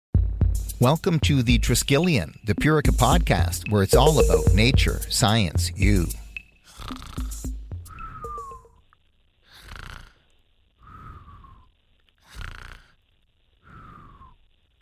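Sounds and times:
speech: 0.8 - 6.2
person snoring: 6.7 - 8.7, 9.5 - 10.2, 10.8 - 13.0.

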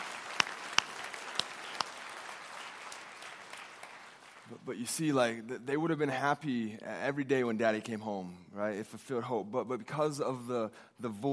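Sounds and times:
audience applause: 0.0 - 4.5
speech: 4.6 - 11.3.

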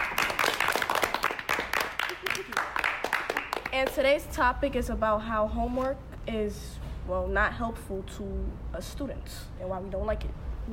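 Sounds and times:
people clapping: 0.0 - 4.2
speech: 3.8 - 10.7.

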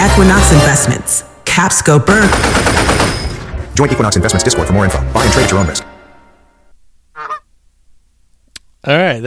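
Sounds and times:
speech: 0.1 - 3.2, 3.8 - 5.9, 8.8 - 9.2
honk sound effect: 7.1 - 7.5.

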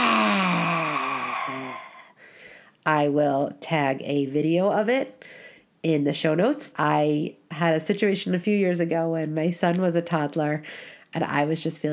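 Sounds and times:
lion's breath, long forceful exhale: 0.0 - 2.7
speech: 2.8 - 11.9.

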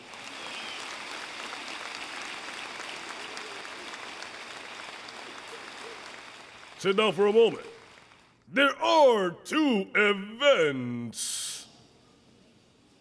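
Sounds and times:
audience applauding: 0.0 - 8.3
speech: 6.8 - 7.7, 8.5 - 11.4.

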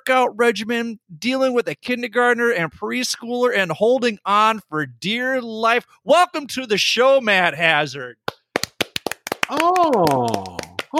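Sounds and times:
speech: 0.0 - 8.4, 9.5 - 10.9
hand claps: 8.2 - 10.9.

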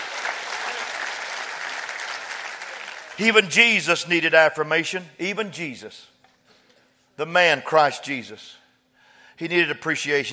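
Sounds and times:
audience clapping: 0.0 - 3.5
speech: 3.2 - 6.2, 7.2 - 8.6, 9.4 - 10.3.

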